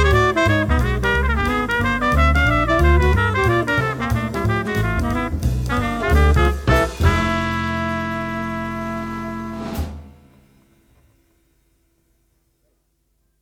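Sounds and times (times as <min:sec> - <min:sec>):
horn: 0:00.0 - 0:10.6.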